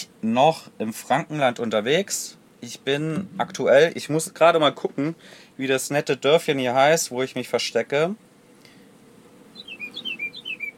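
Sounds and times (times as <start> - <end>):
speech: 0.0 - 8.3
soft hiss: 0.0 - 10.7
small bird chirping: 9.5 - 10.7.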